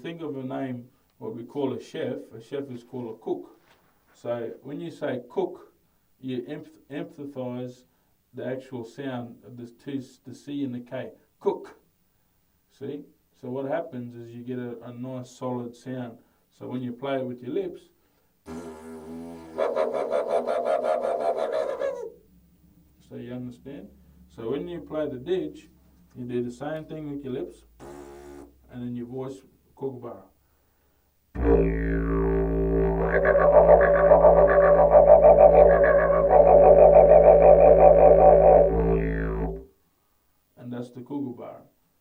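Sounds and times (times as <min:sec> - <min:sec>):
didgeridoo lesson: 0:18.5 - 0:21.8, 0:31.4 - 0:39.7.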